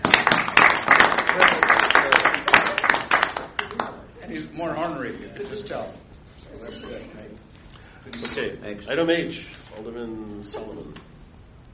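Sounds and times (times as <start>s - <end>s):
audience applause: 0.0s - 4.0s
speech: 4.6s - 11.1s.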